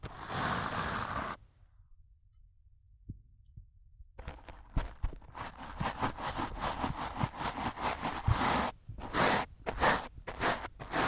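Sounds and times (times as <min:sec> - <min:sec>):
rough scratching and brushing on a microphone: 0:00.0 - 0:01.4, 0:04.2 - 0:11.0.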